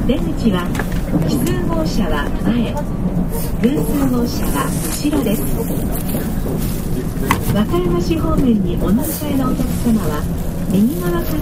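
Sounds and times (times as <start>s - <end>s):
people talking on a ride from Rinku Town to Namba: 0.0s - 11.4s
steady low rumble on a ride from Rinku Town to Namba: 0.0s - 11.4s.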